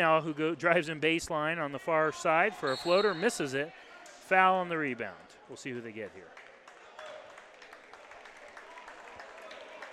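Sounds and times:
speech: 0.0s - 6.4s
team clapping: 6.2s - 9.9s.

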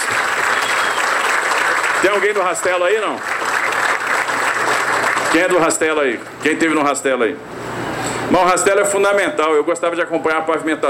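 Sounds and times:
crowd applause: 0.0s - 5.7s
speech: 2.0s - 3.4s, 5.3s - 7.6s, 8.3s - 10.8s.

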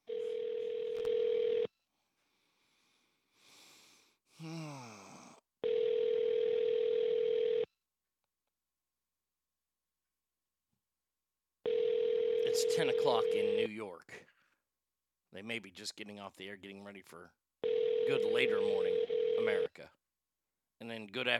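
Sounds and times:
telephone ringback tone on a call: 0.0s - 1.7s, 5.6s - 7.7s, 11.7s - 13.6s, 17.6s - 19.7s
speech: 13.1s - 14.3s, 15.3s - 17.4s, 18.1s - 20.0s, 20.8s - 21.3s.

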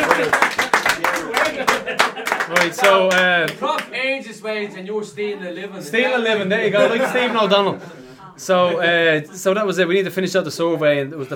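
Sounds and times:
laughter: 0.0s - 3.5s, 6.0s - 8.8s
people clapping: 0.0s - 4.0s
speech: 2.6s - 11.3s.

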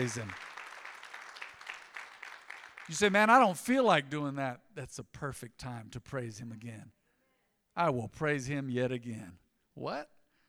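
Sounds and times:
speech: 0.0s - 0.5s, 2.9s - 7.0s, 7.8s - 10.2s
audience clapping: 0.0s - 3.6s.

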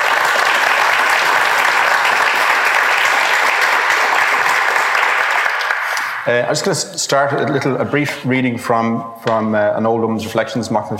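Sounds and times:
audience applause welcoming guests: 0.0s - 6.7s
speech: 6.3s - 10.9s.

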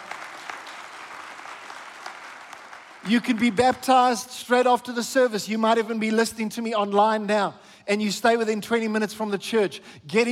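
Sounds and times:
audience applauding: 0.0s - 3.8s
speech: 3.0s - 10.2s.

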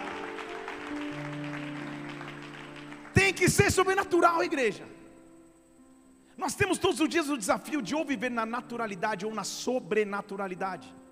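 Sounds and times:
audience applause: 0.0s - 3.9s
speech: 3.4s - 5.0s, 6.5s - 11.0s.

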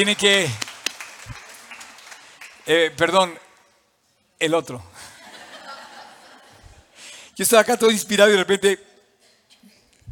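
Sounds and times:
speech: 0.0s - 0.6s, 2.7s - 3.4s, 4.4s - 4.9s, 7.4s - 8.9s
hand clapping applause: 0.0s - 3.2s
laughter: 5.0s - 6.9s.

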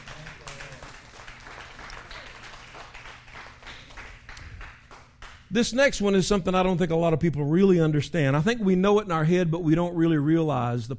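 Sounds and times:
audience clapping: 0.0s - 5.7s
speech: 5.5s - 10.9s.

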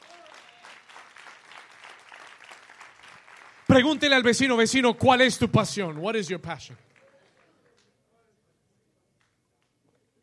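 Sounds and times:
tonal whistle or cheer: 0.0s - 0.8s
audience applause: 0.0s - 7.8s
speech: 3.7s - 6.9s.

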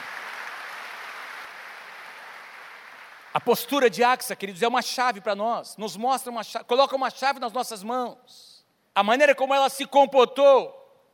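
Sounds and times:
audience applause: 0.0s - 3.4s
speech: 3.4s - 10.8s.

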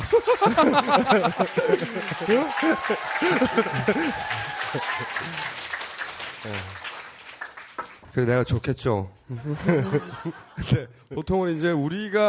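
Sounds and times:
laughter: 0.0s - 5.5s, 9.3s - 10.9s
audience applause: 0.0s - 8.1s
speech: 0.1s - 5.6s, 6.4s - 6.9s, 8.2s - 12.2s.

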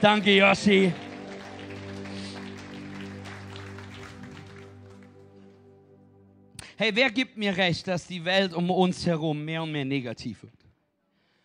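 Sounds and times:
speech: 0.0s - 1.0s, 6.8s - 10.6s
audience applause: 0.0s - 5.7s
sustained low musical tone: 0.0s - 6.7s.

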